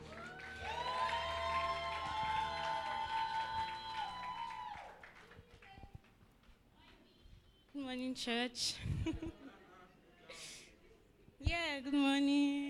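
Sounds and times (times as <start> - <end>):
audience clapping and cheering: 0.0 - 7.0
speech: 7.9 - 9.4, 11.8 - 12.6.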